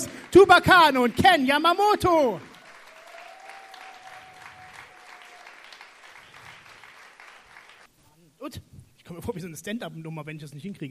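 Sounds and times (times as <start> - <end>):
audience applause for poets on stage: 0.0 - 7.9
speech: 0.3 - 2.5, 8.5 - 10.8.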